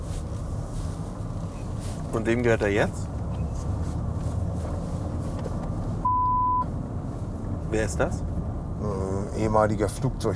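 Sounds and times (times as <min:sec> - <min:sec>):
continuous low rumbling noise: 0:00.0 - 0:10.3
speech: 0:02.1 - 0:03.1, 0:07.7 - 0:10.3
censor bleep: 0:06.0 - 0:06.7.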